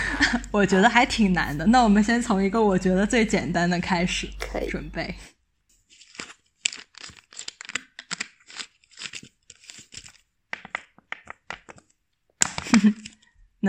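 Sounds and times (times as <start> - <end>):
speech: 0.3 - 5.4, 12.8 - 13.6
plastic mineral water bottle being squeezed: 6.0 - 13.1.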